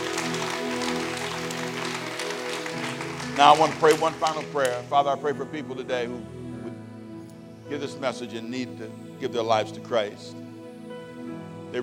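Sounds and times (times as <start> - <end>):
audience hand clapping: 0.0 - 5.2
speech: 3.4 - 6.4, 7.7 - 10.4.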